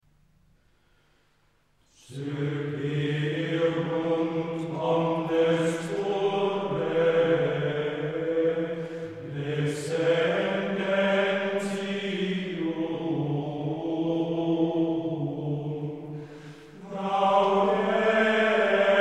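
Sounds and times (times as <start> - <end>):
schola choir singing Gregorian chant: 1.9 - 19.0.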